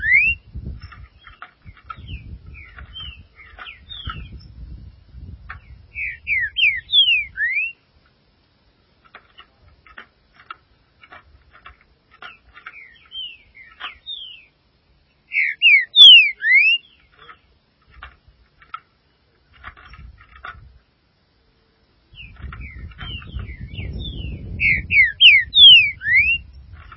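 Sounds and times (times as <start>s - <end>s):
green-winged saltator song: 0.0s - 4.5s, 5.5s - 7.8s, 12.6s - 14.6s, 15.3s - 17.4s, 22.1s - 26.9s.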